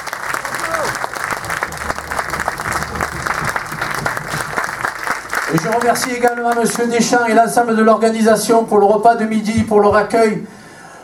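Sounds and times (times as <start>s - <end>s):
audience applauding: 0.0s - 7.3s
speech: 5.5s - 10.6s.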